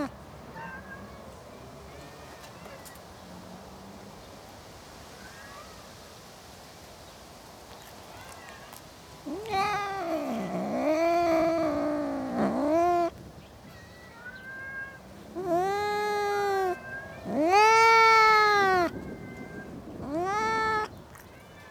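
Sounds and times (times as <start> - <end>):
domestic cat meowing in a suburban garden: 9.2 - 13.2, 13.8 - 21.0.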